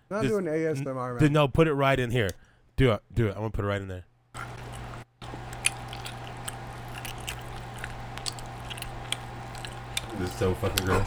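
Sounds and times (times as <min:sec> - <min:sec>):
speech: 0:00.1 - 0:04.5, 0:10.2 - 0:11.0
close-miked chewing and biting of food: 0:04.4 - 0:11.0
steady low hum: 0:04.4 - 0:11.0.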